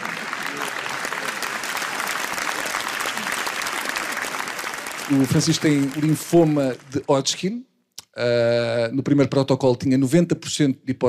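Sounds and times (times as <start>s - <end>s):
audience applause: 0.0s - 7.4s
speech: 5.1s - 11.0s.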